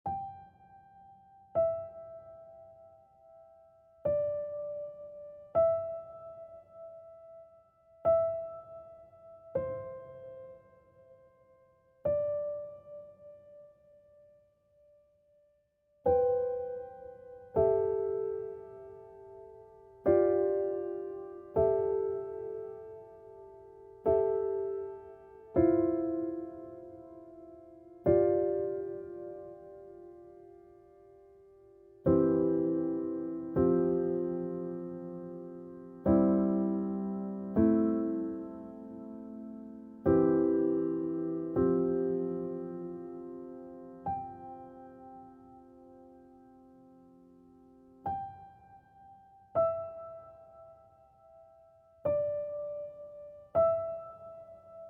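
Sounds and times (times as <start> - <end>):
piano: 0.0 - 54.8.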